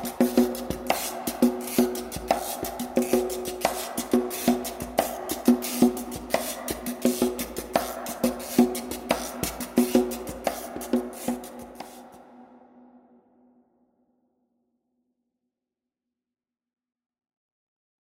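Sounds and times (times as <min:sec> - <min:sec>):
percussion in a hall: 0:00.0 - 0:12.9.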